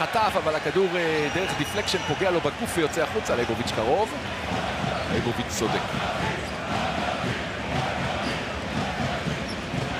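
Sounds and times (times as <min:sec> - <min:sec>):
speech: 0:00.0 - 0:07.4
stadium fans cheering and chanting: 0:00.0 - 0:09.9.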